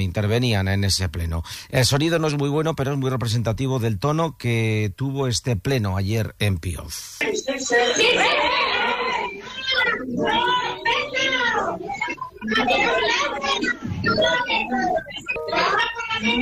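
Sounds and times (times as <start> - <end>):
speech: 0.0 - 8.6, 9.8 - 10.7, 12.1 - 16.3
residents shouting at a council meeting: 7.6 - 14.4.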